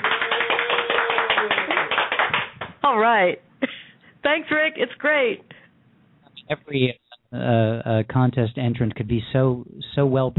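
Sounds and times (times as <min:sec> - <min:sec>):
small group hands clapping: 0:00.0 - 0:02.8
speech: 0:03.0 - 0:05.5, 0:06.5 - 0:10.3.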